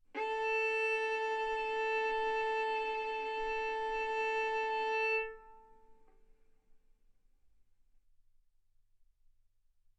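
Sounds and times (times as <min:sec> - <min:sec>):
violin bowed arco notes: 0:00.1 - 0:06.0.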